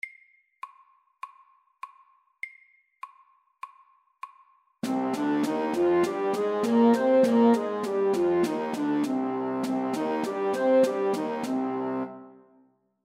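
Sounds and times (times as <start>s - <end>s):
C minor natural scale played forte: 4.8s - 12.4s.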